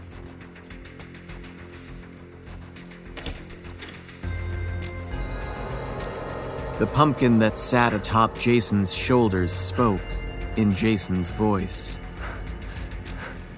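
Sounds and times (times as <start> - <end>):
door opening: 3.1 - 4.2
speech: 6.8 - 12.0.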